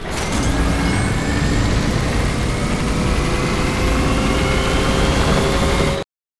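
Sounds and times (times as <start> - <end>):
power-up sound effect: 0.0 - 6.0.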